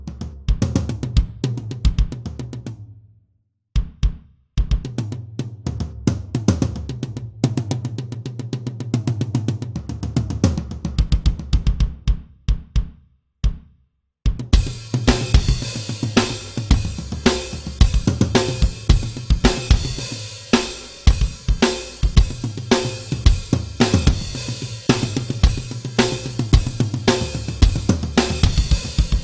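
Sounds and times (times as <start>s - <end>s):
intro drums: 0.0s - 3.0s, 3.8s - 29.2s.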